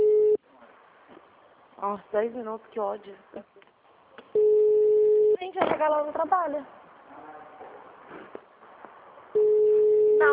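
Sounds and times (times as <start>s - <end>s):
electronic telephone tone from an unanswered call: 0.0s - 0.4s, 4.4s - 5.4s, 9.4s - 10.3s
faint low hum: 0.0s - 10.3s
speech: 1.8s - 3.6s, 5.5s - 6.8s, 10.2s - 10.3s.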